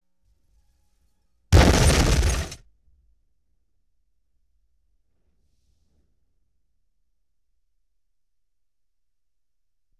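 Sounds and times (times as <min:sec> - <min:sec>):
explosion: 0:01.6 - 0:02.6.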